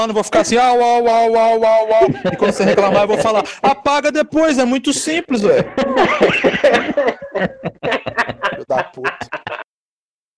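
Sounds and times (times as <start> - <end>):
speech: 0.0 - 9.6
laughter: 1.7 - 3.8, 5.4 - 9.7
person burping: 6.8 - 9.6.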